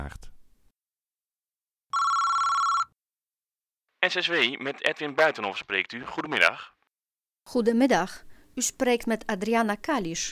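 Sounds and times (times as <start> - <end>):
telephone ringing: 1.9 - 3.0
speech: 4.0 - 6.8, 7.5 - 10.3.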